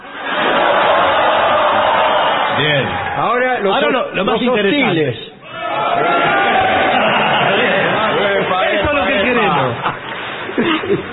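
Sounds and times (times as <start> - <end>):
audience shouting on command: 0.1 - 3.8, 5.4 - 9.8
speech: 2.6 - 5.3
laughter: 6.0 - 11.1.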